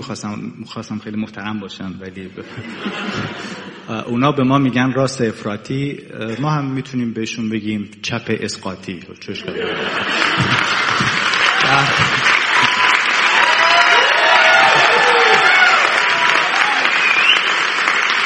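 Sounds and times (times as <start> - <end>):
speech: 0.1 - 10.8
laughter: 2.4 - 4.1, 9.4 - 13.3, 14.4 - 16.3
crowd applauding: 9.6 - 18.2
cheers and voices: 11.4 - 17.4.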